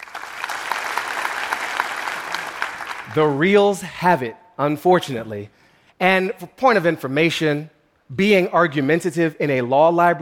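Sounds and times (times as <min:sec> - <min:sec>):
audience clapping: 0:00.0 - 0:03.6
speech: 0:03.1 - 0:10.1.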